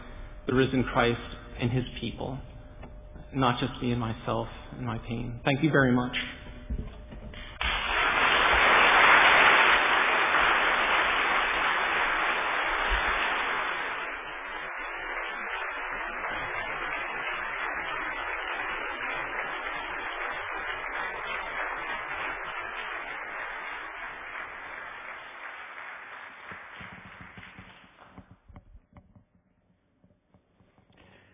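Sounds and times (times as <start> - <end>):
speech: 0.5 - 2.5, 3.3 - 6.9
audience applause: 7.4 - 28.4.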